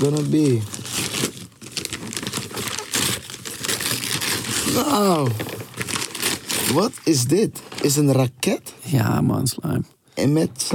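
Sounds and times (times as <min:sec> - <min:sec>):
speech: 0:00.0 - 0:01.3, 0:04.7 - 0:05.5, 0:06.7 - 0:10.7
plastic and paper packaging crinkling and tearing as a toy is unpacked: 0:00.0 - 0:08.2.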